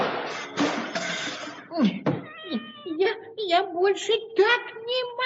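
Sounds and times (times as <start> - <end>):
clock with a pendulum crashing to the floor: 0.0 - 1.6
cat meowing: 2.2 - 2.9
speech: 3.5 - 5.1.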